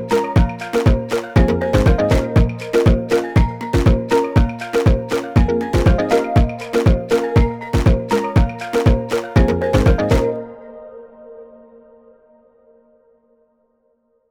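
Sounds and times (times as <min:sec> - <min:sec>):
African safari beat: 0:00.0 - 0:10.4.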